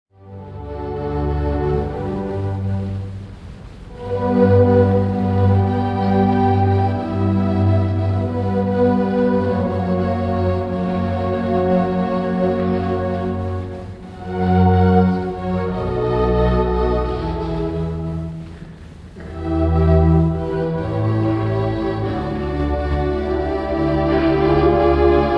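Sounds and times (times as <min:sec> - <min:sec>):
violin concerto: 0:00.2 - 0:25.3.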